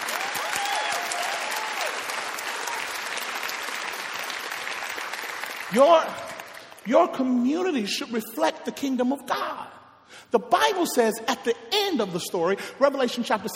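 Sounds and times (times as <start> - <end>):
audience clapping: 0.0 - 7.4
speech: 5.7 - 13.5.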